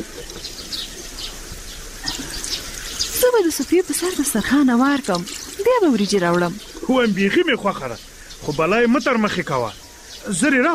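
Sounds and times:
warm water poured over hands for washing with soap: 0:02.0 - 0:07.0
speech: 0:03.4 - 0:10.7.

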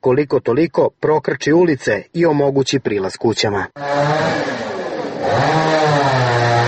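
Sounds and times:
speech: 0:00.0 - 0:06.2
motor saw cutting a fallen log blocking a road: 0:03.8 - 0:06.6.

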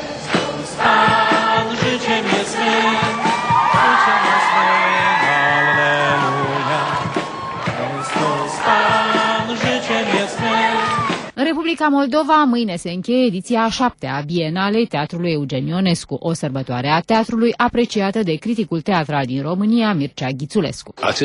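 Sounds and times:
crowd of faithful shouting at outdoor mass: 0:00.8 - 0:11.3
high whoops: 0:03.2 - 0:08.6
speech: 0:11.7 - 0:21.2.

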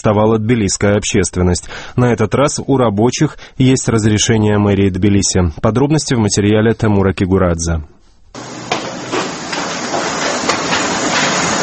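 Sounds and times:
speech: 0:00.0 - 0:08.5
hammering at construction site on Gudiashvili Square: 0:08.4 - 0:11.6
sawing at construction site on Gudiashvili Square: 0:08.4 - 0:11.6
wood planing at construction site on Gudiashvili Square: 0:08.4 - 0:11.6.

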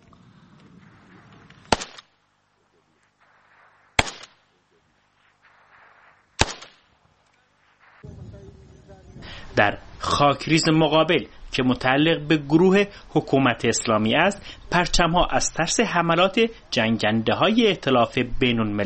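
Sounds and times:
gunfire toward enemy positions: 0:00.8 - 0:02.2, 0:03.2 - 0:04.6, 0:05.4 - 0:07.0
speech: 0:09.5 - 0:18.8.

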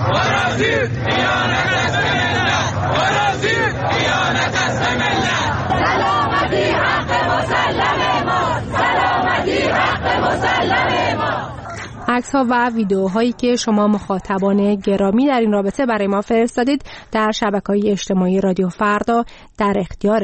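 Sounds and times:
crowd chanting slogans at a street protest: 0:00.0 - 0:14.4
speech: 0:00.6 - 0:01.4, 0:10.1 - 0:20.2.

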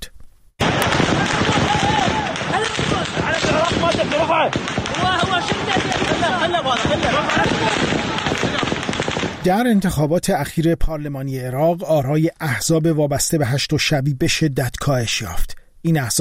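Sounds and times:
gunshots fired into the air: 0:00.6 - 0:09.7
speech: 0:06.2 - 0:07.8, 0:09.4 - 0:16.2.

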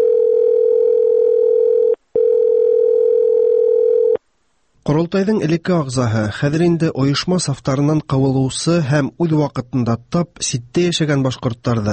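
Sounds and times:
telephone ringing with no answer: 0:00.0 - 0:04.2
speech: 0:04.9 - 0:11.9.

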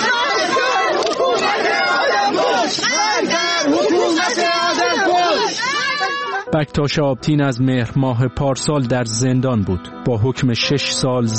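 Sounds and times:
crowd of mourners shouting at a funeral: 0:00.0 - 0:06.5
speech: 0:06.5 - 0:11.3.

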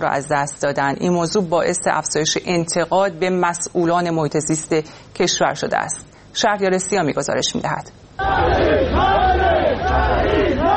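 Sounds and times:
speech: 0:00.0 - 0:10.7
crowd chanting slogans at a protest in Paveh, Iran: 0:08.2 - 0:10.7.

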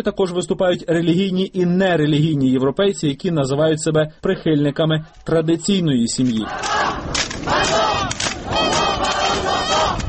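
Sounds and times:
speech: 0:00.0 - 0:07.8
demonstration crowd chanting a slogan in unison: 0:06.4 - 0:10.0.

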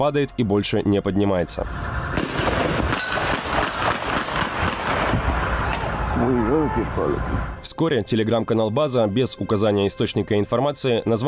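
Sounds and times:
speech: 0:00.0 - 0:02.3, 0:06.2 - 0:11.2
loud roar: 0:01.7 - 0:07.6
gunfire in street footage: 0:02.1 - 0:06.0.

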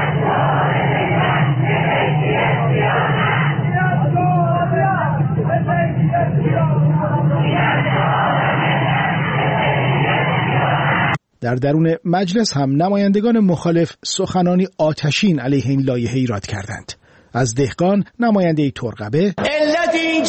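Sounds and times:
protest crowd chanting slogans: 0:00.0 - 0:11.1
speech: 0:11.4 - 0:20.2.

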